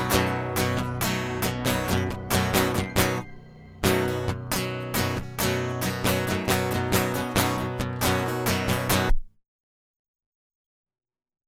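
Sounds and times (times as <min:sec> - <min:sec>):
instrumental music: 0:00.0 - 0:09.2.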